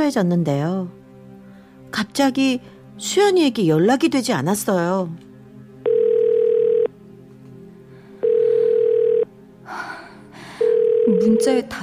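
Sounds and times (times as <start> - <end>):
speech: 0.1 - 1.0, 1.9 - 5.3, 11.1 - 11.8
phone ringback tone: 5.8 - 6.9, 8.2 - 9.3, 10.6 - 11.5.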